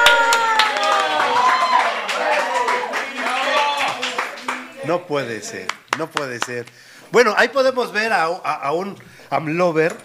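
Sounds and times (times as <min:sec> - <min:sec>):
loud cheering and overlapping shouting voices: 0:00.0 - 0:04.7
audience clapping: 0:00.0 - 0:06.8
speech: 0:04.9 - 0:10.0.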